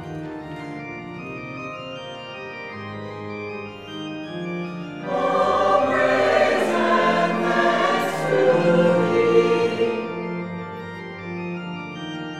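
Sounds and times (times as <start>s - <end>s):
chancel choir performance: 5.0s - 11.0s.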